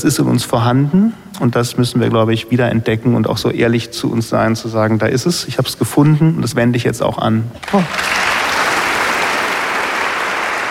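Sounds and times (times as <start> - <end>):
speech: 0.0 - 8.3
audience applause after a reading: 7.6 - 10.6.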